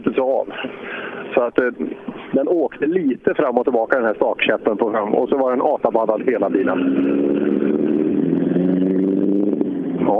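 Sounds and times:
speech: 0:00.2 - 0:07.3
Opel Ascona D rally car engine passing on a rally stage: 0:05.0 - 0:10.1.

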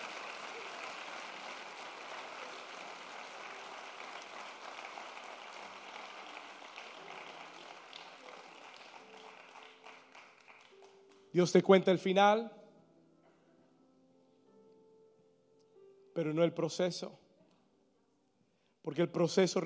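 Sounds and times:
crowd applause: 0:00.0 - 0:11.3
speech: 0:11.4 - 0:12.6, 0:16.2 - 0:17.2, 0:18.8 - 0:19.6.

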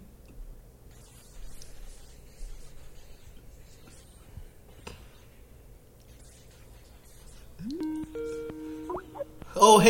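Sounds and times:
phone ringing for incoming call: 0:07.6 - 0:09.7.

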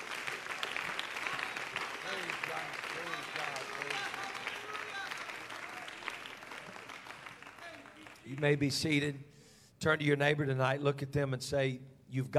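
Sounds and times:
audience clapping hands in praise: 0:00.0 - 0:08.8
speech: 0:08.3 - 0:12.3.

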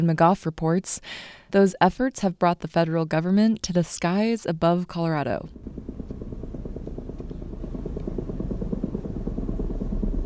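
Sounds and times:
speech: 0:00.0 - 0:05.8
helicopter buzz overhead: 0:05.1 - 0:10.2.

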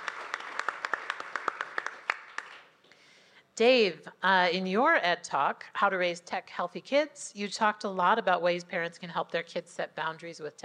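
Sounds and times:
audience clapping: 0:00.0 - 0:02.8
speech: 0:03.6 - 0:10.6.

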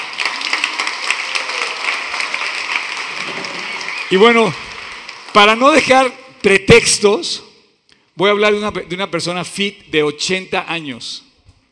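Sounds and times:
crowd applauding: 0:00.0 - 0:06.1
speech: 0:04.1 - 0:04.7, 0:05.3 - 0:07.5, 0:08.2 - 0:11.3.

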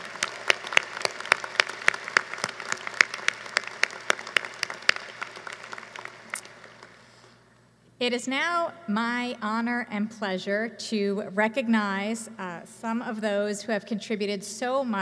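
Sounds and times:
applause: 0:00.0 - 0:07.2
speech: 0:08.0 - 0:15.0.

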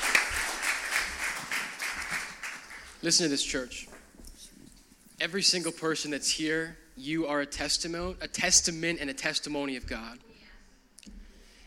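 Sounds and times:
people clapping: 0:00.0 - 0:03.6
speech: 0:03.0 - 0:03.9, 0:05.2 - 0:10.3.

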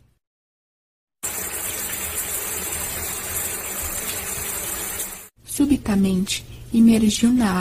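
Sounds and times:
shower running: 0:01.2 - 0:05.3
speech: 0:05.6 - 0:07.5.

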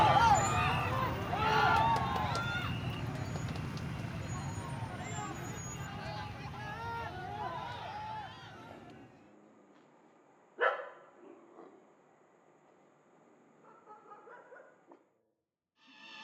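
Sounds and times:
overlapping voices in Phnom Penh street: 0:00.0 - 0:09.2
low vehicle rumble: 0:00.0 - 0:10.0.

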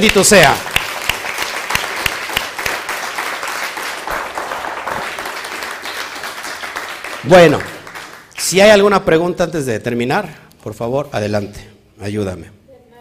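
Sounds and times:
speech: 0:00.0 - 0:00.7, 0:07.2 - 0:07.7, 0:08.4 - 0:12.6
crowd applauding: 0:00.0 - 0:08.4.

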